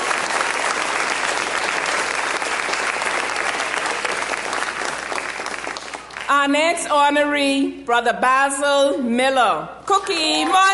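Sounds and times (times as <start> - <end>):
church congregation clapping at an event honouring fathers: 0.0 - 6.4
speech: 6.4 - 10.7.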